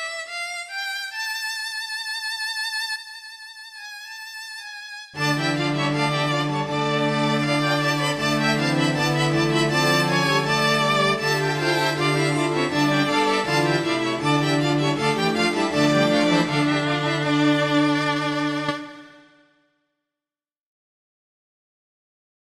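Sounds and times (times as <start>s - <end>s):
string instruments: 0.0s - 19.6s.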